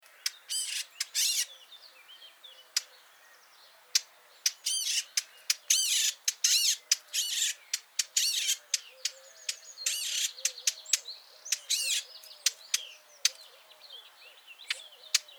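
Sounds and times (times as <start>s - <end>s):
Eurasian blackcap rasping churrs: 0.2s - 1.6s, 4.0s - 13.4s.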